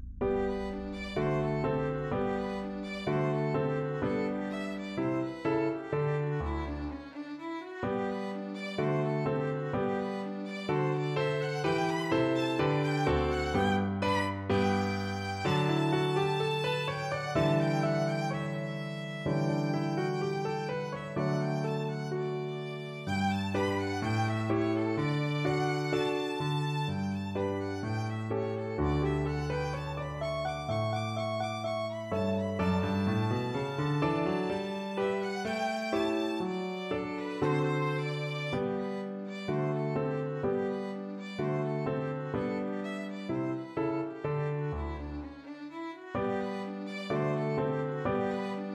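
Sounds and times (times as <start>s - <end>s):
classical rondo: 0.2s - 48.7s.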